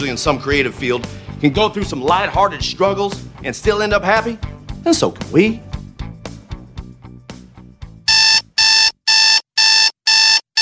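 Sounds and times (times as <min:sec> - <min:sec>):
speech: 0:00.0 - 0:05.7
alarm clock ringing in shrill electronic bursts: 0:08.1 - 0:10.6.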